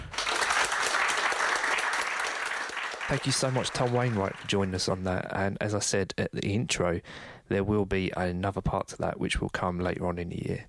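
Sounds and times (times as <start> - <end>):
audience applause: 0.0 - 5.0
speech: 3.1 - 10.6.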